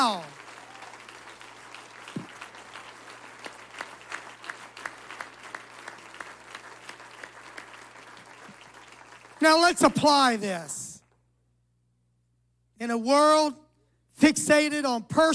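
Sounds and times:
speech: 0.0 - 0.4, 9.4 - 10.8, 12.8 - 13.6, 14.2 - 15.3
audience round of applause: 0.0 - 10.4.

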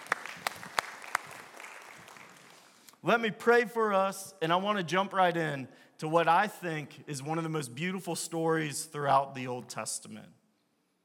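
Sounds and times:
audience clapping: 0.0 - 2.9
speech: 3.0 - 10.4.

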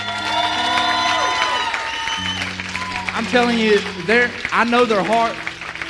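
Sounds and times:
audience cheering with whoops: 0.0 - 4.5
audience clapping: 0.0 - 5.8
speech: 3.3 - 5.4.

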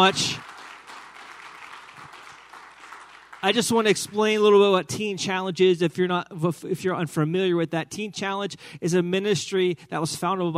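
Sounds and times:
speech: 0.0 - 0.4, 3.4 - 10.5
round of applause: 0.0 - 4.6.

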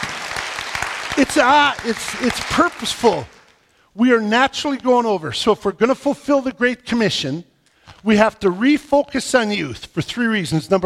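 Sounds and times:
round of applause: 0.0 - 3.6
speech: 1.2 - 3.4, 4.0 - 10.8.

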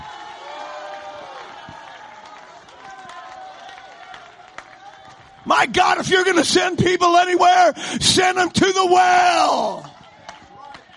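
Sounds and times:
scattered claps and whoops: 0.0 - 5.5, 9.6 - 10.9
audience shouting in triumph: 0.0 - 10.9
speech: 5.5 - 9.9.

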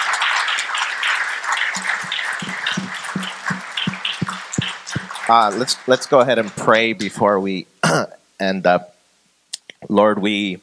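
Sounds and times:
audience applause: 0.0 - 7.2
speech: 5.3 - 8.9, 9.8 - 10.6.

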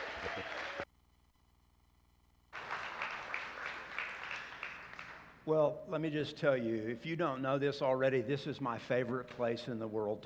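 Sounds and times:
audience applause: 0.0 - 0.8, 2.6 - 5.4
speech: 5.5 - 10.2.

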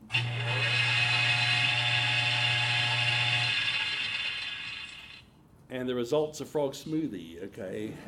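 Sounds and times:
electric blender running: 0.0 - 5.2
speech: 5.8 - 8.0.

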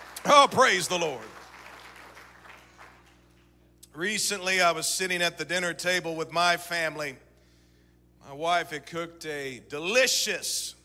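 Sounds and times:
audience clapping hands: 0.0 - 3.5
speech: 0.2 - 1.4, 4.0 - 7.2, 8.2 - 10.8.

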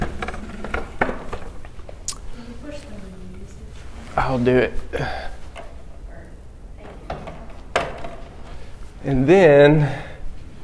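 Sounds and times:
chair being moved: 0.0 - 1.9, 3.5 - 6.1, 6.8 - 9.3
speech: 4.3 - 5.3, 9.0 - 10.1.

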